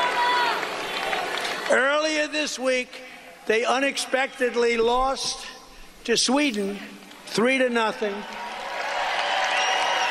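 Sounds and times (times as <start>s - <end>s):
crowd cheering: 0.0s - 1.8s, 8.1s - 10.1s
speech: 1.7s - 8.4s.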